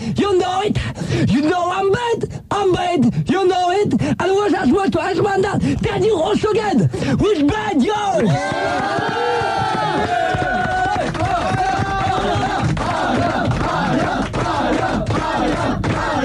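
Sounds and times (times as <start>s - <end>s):
speech: 0.1s - 10.4s
crowd cheering and shouting in a standing ovation: 8.2s - 16.2s.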